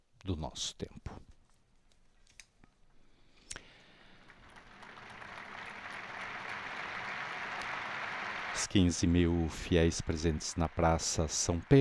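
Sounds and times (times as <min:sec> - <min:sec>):
speech: 0:00.2 - 0:01.3, 0:08.7 - 0:11.7
large outdoor crowd applauding: 0:03.6 - 0:11.7.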